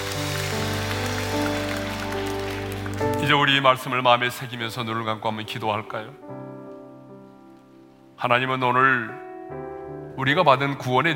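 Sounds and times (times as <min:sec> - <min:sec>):
applause: 0:00.0 - 0:03.9
speech: 0:03.2 - 0:06.3, 0:08.2 - 0:09.6, 0:10.2 - 0:11.1.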